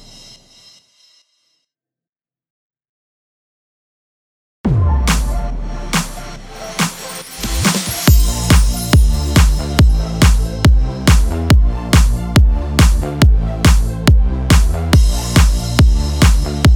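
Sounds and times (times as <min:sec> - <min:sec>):
Christmas music in A sharp minor: 0:04.8 - 0:16.7.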